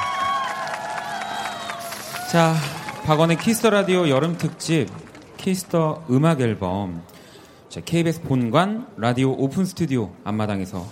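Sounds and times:
crowd clapping and cheering: 0.0 - 6.5
speech: 2.3 - 7.1, 7.7 - 10.9.

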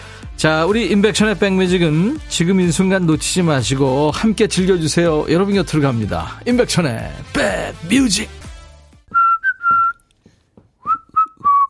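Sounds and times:
speech: 0.4 - 8.4
whistling in a hip-hop song: 9.1 - 10.0, 10.8 - 11.6.

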